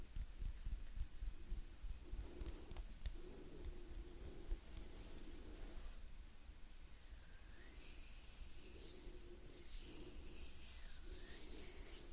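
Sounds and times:
hands rubbing and brushing: 0:00.0 - 0:06.0, 0:07.0 - 0:12.1.

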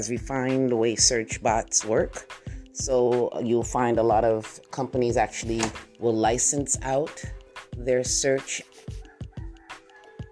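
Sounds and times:
speech: 0:00.0 - 0:09.0
rooster crowing: 0:09.0 - 0:10.3.

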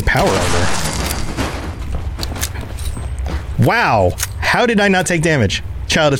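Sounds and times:
rocket explosions in a video game: 0:00.0 - 0:02.2
steady rumbling video game background: 0:00.0 - 0:06.1
speech: 0:00.1 - 0:00.8, 0:03.6 - 0:06.1.

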